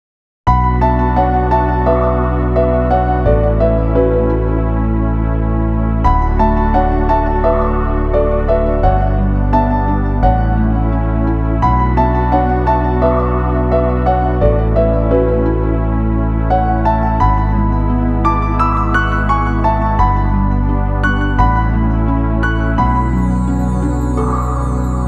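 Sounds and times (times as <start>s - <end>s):
sad music theme: 0.5s - 25.0s.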